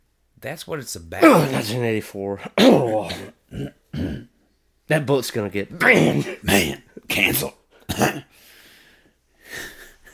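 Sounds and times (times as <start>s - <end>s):
speech: 0.4s - 4.3s, 4.9s - 8.3s
small hacking cough: 2.4s - 4.3s, 5.8s - 6.8s, 7.9s - 8.3s.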